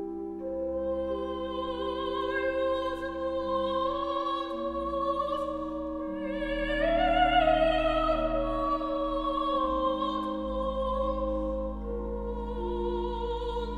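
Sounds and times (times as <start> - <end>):
soprano singing: 0.0 - 13.7.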